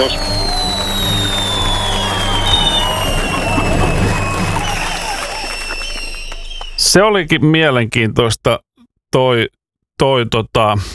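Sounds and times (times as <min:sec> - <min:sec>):
speech: 0:00.0 - 0:00.5, 0:06.9 - 0:10.9
applause: 0:00.0 - 0:07.2.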